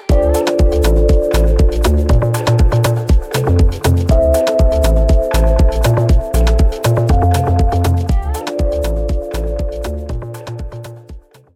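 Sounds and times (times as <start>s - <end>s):
afro house music: 0.1s - 11.5s.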